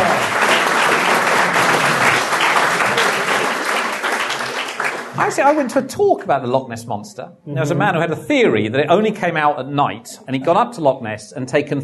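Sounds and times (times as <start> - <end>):
audience applause: 0.0 - 5.6
speech: 5.4 - 11.8.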